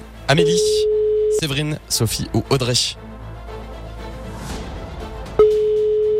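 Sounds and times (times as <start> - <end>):
speech: 0.3 - 3.1
electronic telephone ringing tone on a call: 0.4 - 1.4, 5.4 - 6.1.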